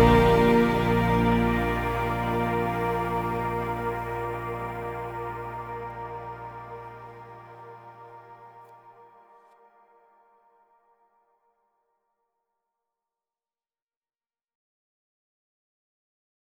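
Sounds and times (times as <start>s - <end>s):
instrumental music: 0.0s - 8.4s.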